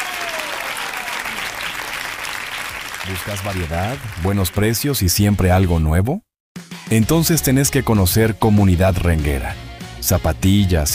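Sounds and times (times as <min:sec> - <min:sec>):
audience applause: 0:00.0 - 0:04.9
speech: 0:03.0 - 0:06.3, 0:06.9 - 0:10.9.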